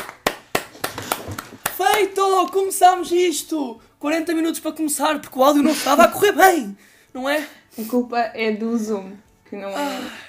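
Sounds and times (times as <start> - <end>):
hosts clapping hands: 0.0 - 2.7
speech: 1.8 - 10.2.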